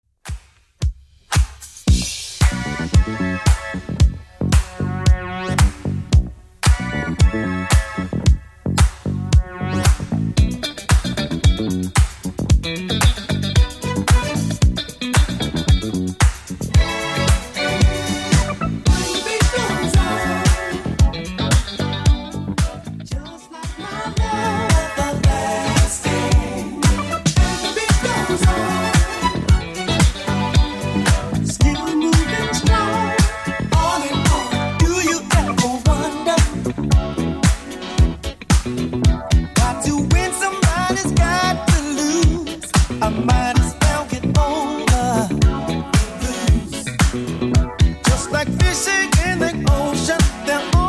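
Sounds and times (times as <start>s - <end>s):
1970s style drum loop: 0.2s - 50.8s.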